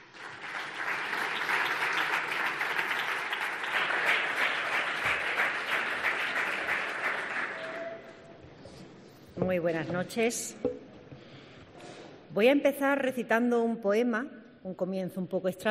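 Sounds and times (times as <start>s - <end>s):
audience applause: 0.0s - 8.1s
speech: 9.5s - 10.7s, 12.4s - 15.6s.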